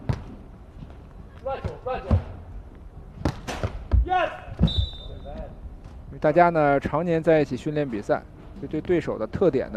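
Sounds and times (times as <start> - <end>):
ball being served in a match: 3.2 - 4.8
speech: 6.2 - 9.7.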